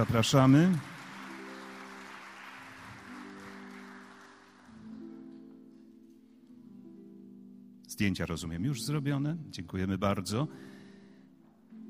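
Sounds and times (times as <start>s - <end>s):
speech: 0.0s - 0.9s, 8.0s - 10.8s
audience applause: 0.0s - 5.1s.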